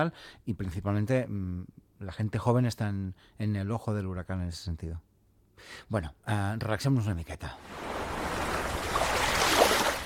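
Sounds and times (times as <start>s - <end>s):
speech: 0.0s - 7.9s
sea waves: 7.6s - 10.0s.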